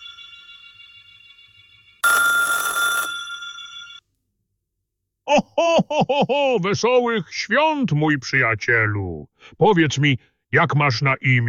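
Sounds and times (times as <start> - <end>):
electronic telephone ring tone on outgoing call: 2.0 - 4.0
speech: 5.4 - 11.4.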